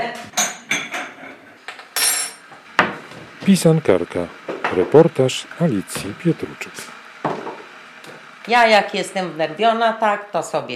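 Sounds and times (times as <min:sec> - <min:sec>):
ceramic dishes and metal cutlery clinking while making coffee: 0:00.4 - 0:02.5
speech: 0:03.5 - 0:07.0, 0:08.5 - 0:10.7.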